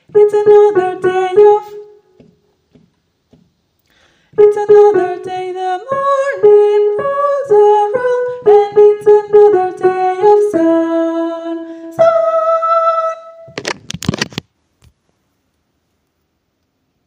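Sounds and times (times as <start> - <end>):
soprano singing: 0.0 - 2.1, 4.4 - 13.6.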